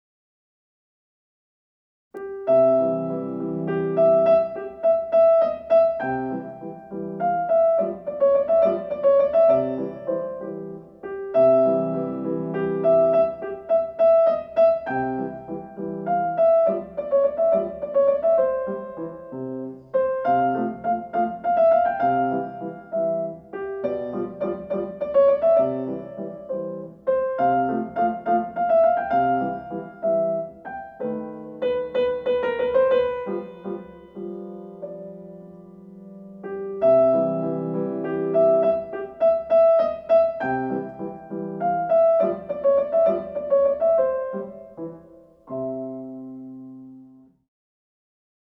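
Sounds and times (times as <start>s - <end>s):
piano aria: 2.2s - 47.4s.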